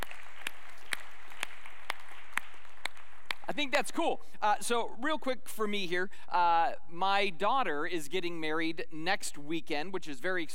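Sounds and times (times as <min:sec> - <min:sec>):
audience clapping: 0:00.0 - 0:04.0
speech: 0:03.5 - 0:10.5.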